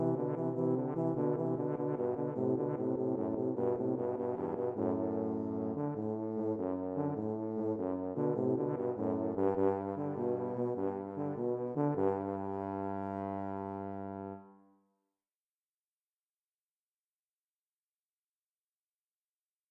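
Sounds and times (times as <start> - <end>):
tuba duet: 0.0 - 14.6.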